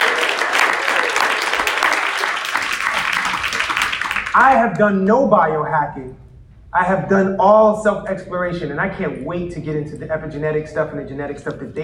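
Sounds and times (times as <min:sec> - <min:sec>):
audience applause: 0:00.0 - 0:04.5
speech: 0:04.4 - 0:06.2, 0:06.8 - 0:11.8.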